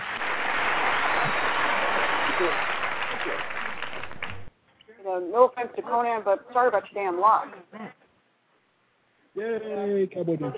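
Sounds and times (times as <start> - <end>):
audience cheering and applauding: 0.0 - 4.5
speech: 2.4 - 3.5, 5.1 - 8.0, 9.4 - 10.5.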